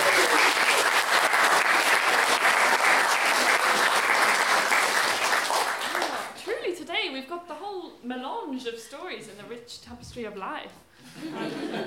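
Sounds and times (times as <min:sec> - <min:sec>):
audience applause: 0:00.0 - 0:06.4
speech: 0:08.5 - 0:11.8
laughter: 0:11.0 - 0:11.8.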